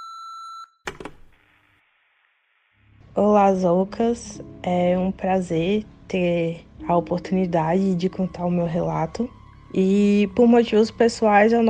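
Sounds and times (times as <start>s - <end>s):
voicemail new-message beep: 0.0s - 0.8s
speech: 3.2s - 11.6s.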